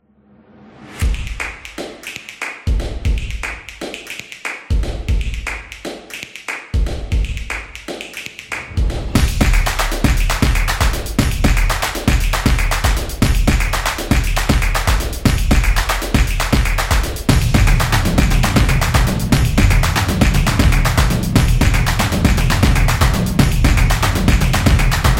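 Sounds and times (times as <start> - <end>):
drums opener: 1.0 - 1.9, 4.7 - 5.8, 6.8 - 7.9, 8.6 - 25.1.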